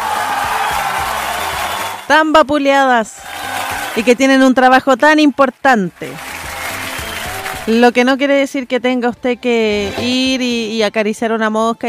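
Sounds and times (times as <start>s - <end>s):
applause: 0.0s - 2.3s, 3.2s - 4.4s, 5.9s - 7.8s
people cheering: 0.0s - 2.3s, 3.2s - 4.3s, 6.2s - 7.8s
speech: 2.1s - 3.3s, 4.0s - 6.3s, 7.7s - 11.8s.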